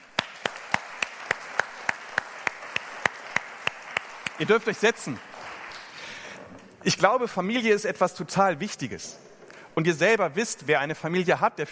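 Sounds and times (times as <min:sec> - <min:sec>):
congregation applauding: 0:00.0 - 0:06.6
speech: 0:04.4 - 0:05.3, 0:06.8 - 0:11.7.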